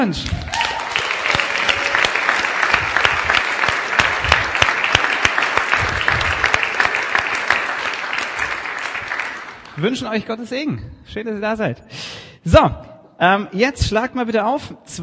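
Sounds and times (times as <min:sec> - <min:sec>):
speech: 0:00.0 - 0:00.6, 0:09.8 - 0:15.0
audience applauding: 0:00.0 - 0:10.0.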